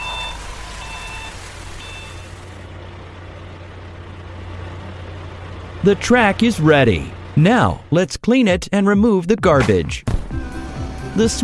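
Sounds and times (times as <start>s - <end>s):
concrete mixer truck reversing beeps: 0.0s - 2.4s
heavy truck engine rumble: 0.0s - 11.4s
speech: 5.8s - 10.1s, 11.2s - 11.4s.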